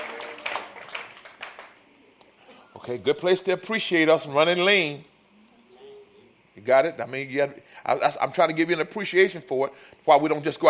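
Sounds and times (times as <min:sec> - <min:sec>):
church congregation clapping: 0:00.0 - 0:01.8
speech: 0:02.8 - 0:05.1, 0:06.6 - 0:10.6.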